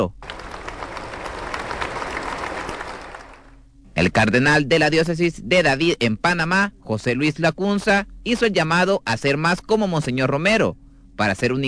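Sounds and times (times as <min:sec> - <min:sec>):
speech: 0:00.0 - 0:00.2, 0:04.0 - 0:11.6
Catholic church community applauding: 0:00.2 - 0:03.6.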